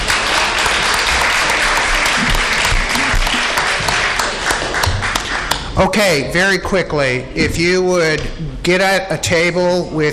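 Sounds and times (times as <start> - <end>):
audience applause after election vote: 0.0 - 5.8
speech: 5.8 - 10.1.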